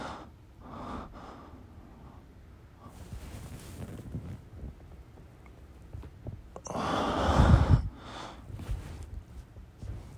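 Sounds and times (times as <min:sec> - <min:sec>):
person breathing and moaning while masturbating: 0:06.6 - 0:09.0.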